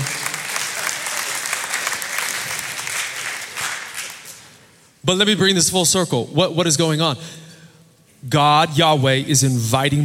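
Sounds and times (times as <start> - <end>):
crowd applause: 0.0 - 4.6
speech: 5.0 - 7.4, 8.2 - 10.0.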